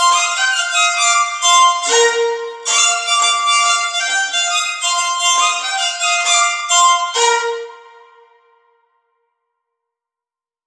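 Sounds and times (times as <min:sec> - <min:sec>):
violin: 0:00.0 - 0:08.5.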